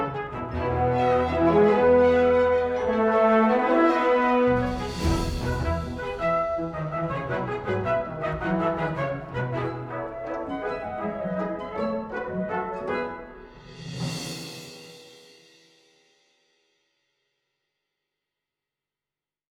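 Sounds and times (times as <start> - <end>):
brass celebration music: 0.0 - 14.7.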